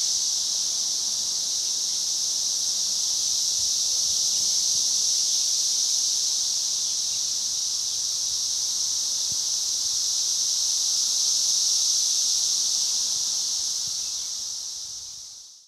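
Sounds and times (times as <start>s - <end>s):
cicadas: 0.0s - 15.6s.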